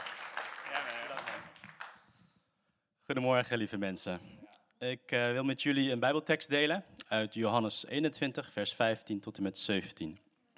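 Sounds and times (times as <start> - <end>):
church congregation applauding for a guest speaker: 0.0 - 2.2
speech: 3.1 - 10.2.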